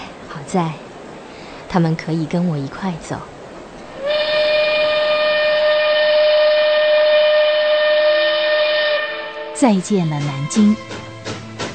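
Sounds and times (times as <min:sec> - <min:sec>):
speech: 0:00.4 - 0:00.8, 0:01.7 - 0:03.3, 0:09.6 - 0:11.1
train whistle blast: 0:03.9 - 0:11.1.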